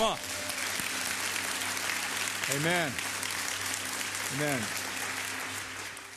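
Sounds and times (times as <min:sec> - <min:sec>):
speech: 0:00.0 - 0:00.3, 0:02.5 - 0:03.1, 0:04.3 - 0:04.8
audience applause: 0:00.0 - 0:06.1.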